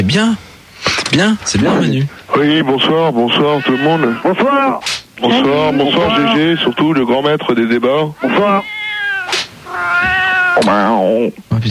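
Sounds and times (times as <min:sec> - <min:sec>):
speech: 0:00.0 - 0:08.8, 0:10.6 - 0:11.6
cat meowing: 0:03.3 - 0:07.0, 0:08.2 - 0:11.2.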